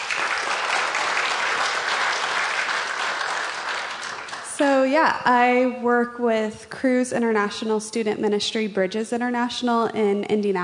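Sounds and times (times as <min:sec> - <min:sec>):
audience applause welcoming a speaker at a ministry gathering: 0:00.0 - 0:04.6
speech: 0:04.6 - 0:10.6.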